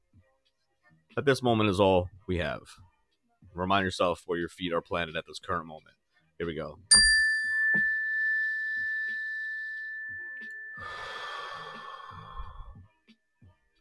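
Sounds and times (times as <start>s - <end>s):
speech: 1.2s - 2.9s, 3.6s - 7.9s
mindfulness bell ringing: 6.9s - 11.7s
soft breath: 10.8s - 12.9s.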